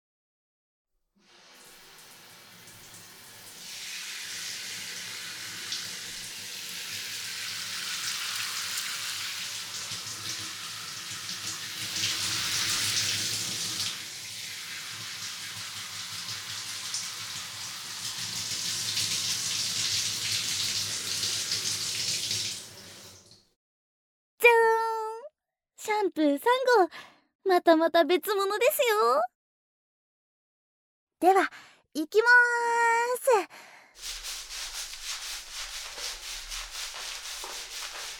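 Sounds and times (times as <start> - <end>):
shower water running during hair rinse: 1.2 - 23.5, 34.0 - 38.1
speech: 26.1 - 29.3, 31.2 - 34.2.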